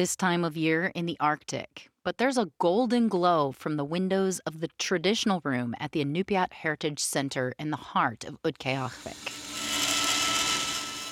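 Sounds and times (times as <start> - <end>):
speech: 0.0 - 9.4
bandsaws buzzing: 8.9 - 11.0
sanders whirring: 8.9 - 11.0.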